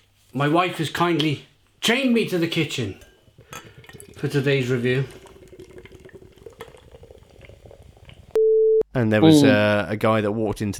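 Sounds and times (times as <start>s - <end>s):
speech: 0.3s - 5.2s, 9.0s - 10.7s
beer poured from a can into a glass: 2.8s - 8.4s.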